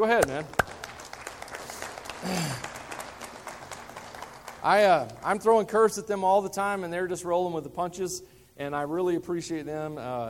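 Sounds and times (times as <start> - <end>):
speech: 0.0 - 0.6, 2.2 - 2.7, 4.6 - 10.2
audience applause: 0.2 - 5.6.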